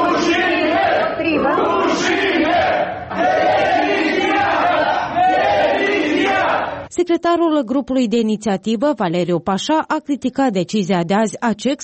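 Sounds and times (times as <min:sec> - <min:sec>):
crowd chanting shame and calling for resignation: 0:00.0 - 0:06.9
speech: 0:07.0 - 0:11.8.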